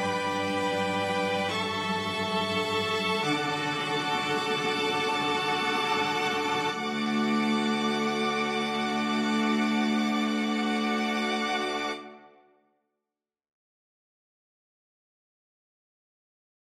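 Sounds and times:
string quartet: 0:00.0 - 0:12.4.

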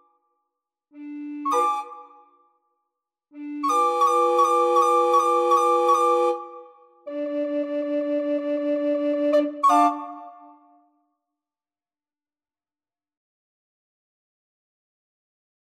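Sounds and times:
recorder ensemble playing: 0:01.0 - 0:02.0, 0:03.4 - 0:06.4, 0:07.1 - 0:09.9.

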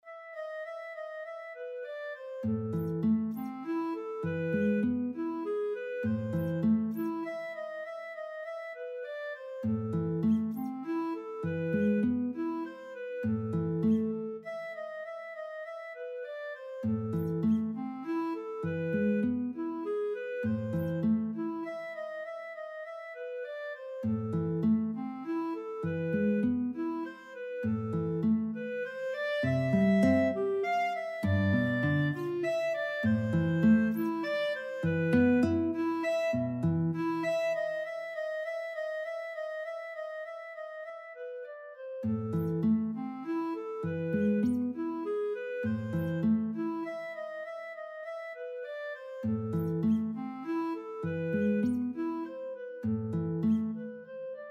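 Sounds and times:
guitar and clarinet duet: 0:00.0 - 0:54.5.

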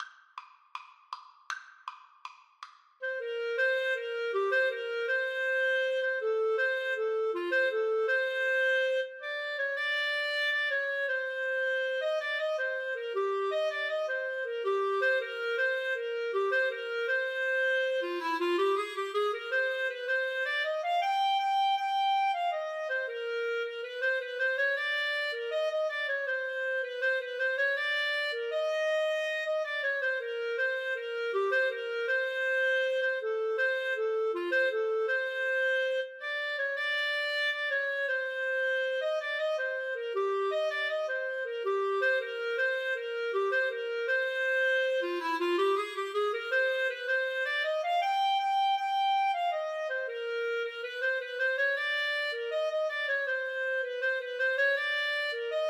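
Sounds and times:
clarinet duet: 0:03.0 - 0:55.6.

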